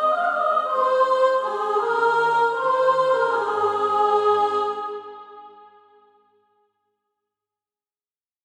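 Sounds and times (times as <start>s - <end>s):
soprano singing SATB practice music: 0.0s - 5.6s.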